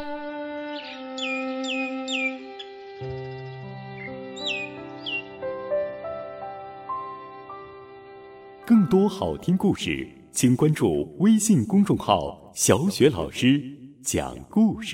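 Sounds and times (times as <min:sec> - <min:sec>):
myna bird calling: 0:00.6 - 0:05.5
speech: 0:08.7 - 0:14.9.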